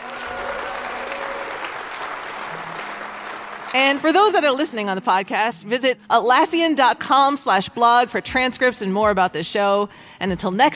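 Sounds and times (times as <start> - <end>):
audience applause: 0.0 - 4.4
speech: 3.7 - 10.7.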